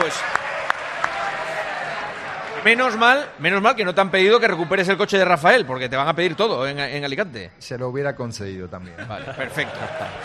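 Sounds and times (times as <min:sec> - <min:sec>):
speech: 0:00.0 - 0:00.4, 0:02.6 - 0:10.2
audience applause: 0:00.0 - 0:03.1
laughter: 0:08.8 - 0:10.2.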